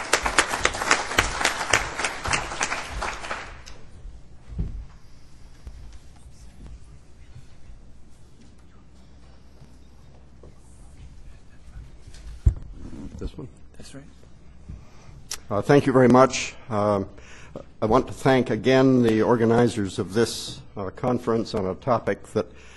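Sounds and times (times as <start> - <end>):
audience clapping: 0.0 - 4.0
faint shuffling: 0.0 - 15.3
speech: 13.4 - 14.3, 15.5 - 22.7.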